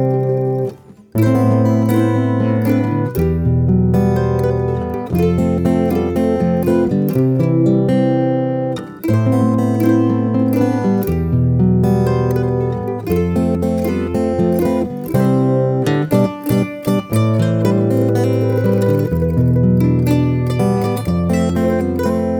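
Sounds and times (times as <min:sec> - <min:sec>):
guitar and mandolin duet: 0:00.0 - 0:22.3.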